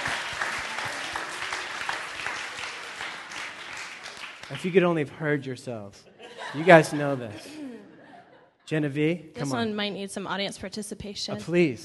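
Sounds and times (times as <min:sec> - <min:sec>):
audience applause: 0:00.0 - 0:05.0
speech: 0:04.5 - 0:07.6, 0:08.7 - 0:11.8
laughter: 0:06.0 - 0:08.6.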